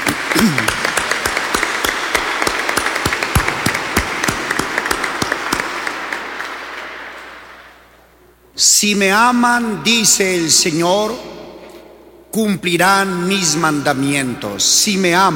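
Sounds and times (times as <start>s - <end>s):
audience applause: 0.0s - 7.7s
speech: 0.4s - 0.8s, 8.6s - 11.4s, 12.4s - 15.3s.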